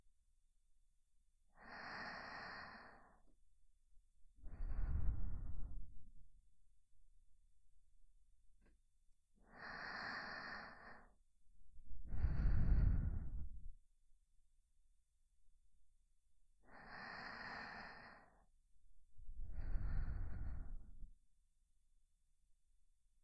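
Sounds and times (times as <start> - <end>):
sleeping breath loop on left channel: 1.6 - 3.3, 4.4 - 6.1, 9.4 - 11.2, 12.0 - 13.7, 16.6 - 18.5, 19.3 - 21.1.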